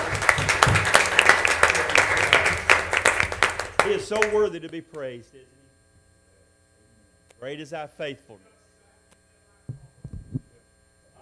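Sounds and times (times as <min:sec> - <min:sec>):
audience hand clapping: 0:00.0 - 0:05.0
speech: 0:04.1 - 0:05.6, 0:07.4 - 0:08.5.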